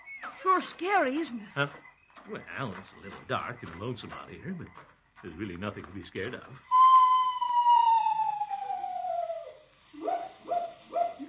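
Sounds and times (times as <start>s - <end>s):
speech: 0.4s - 6.8s
screech owl call: 6.6s - 11.2s.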